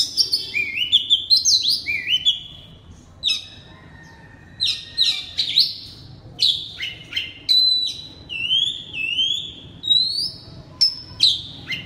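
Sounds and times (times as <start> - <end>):
Oriental magpie-robin whistles and sharp chips: 0.0 - 2.7, 4.6 - 11.8.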